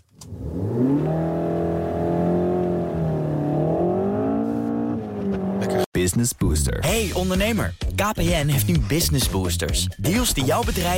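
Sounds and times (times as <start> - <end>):
sports car engine revving: 0.2 - 5.9
speech: 6.0 - 10.9.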